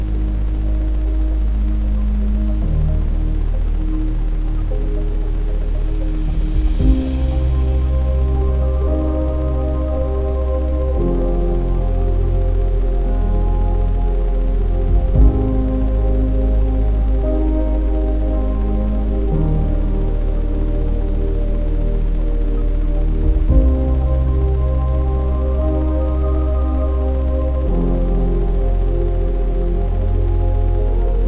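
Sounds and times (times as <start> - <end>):
ambient sound with Rife frequencies: 0.0 - 31.2.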